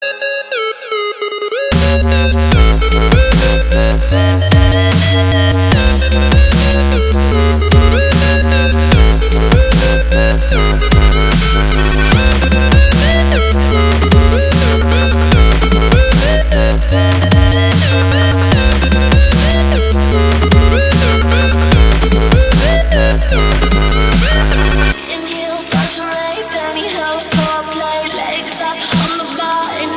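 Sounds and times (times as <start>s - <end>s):
dubstep remix: 0.0s - 29.9s.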